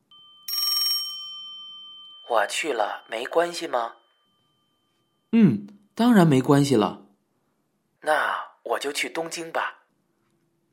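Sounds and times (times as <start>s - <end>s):
telephone ringing: 0.4s - 5.0s
speech: 2.3s - 4.0s, 5.3s - 7.0s, 8.0s - 9.8s.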